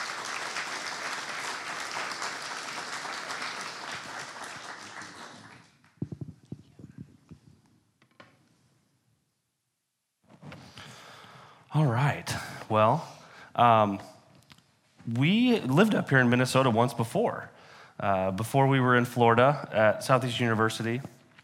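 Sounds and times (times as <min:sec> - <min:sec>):
church congregation applauding to welcome guests to the stage: 0:00.0 - 0:06.1
speech: 0:11.8 - 0:14.1, 0:15.1 - 0:21.1.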